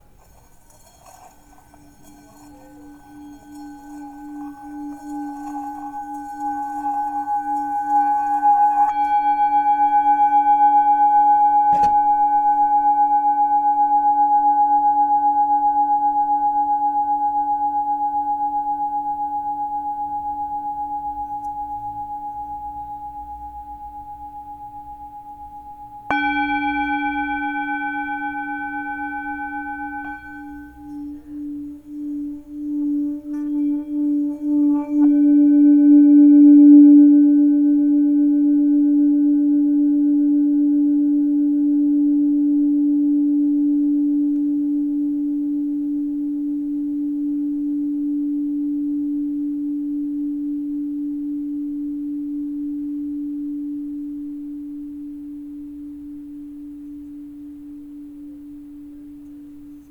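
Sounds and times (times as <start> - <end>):
Bengal bowl tone in C sharp: 0.0 - 59.8.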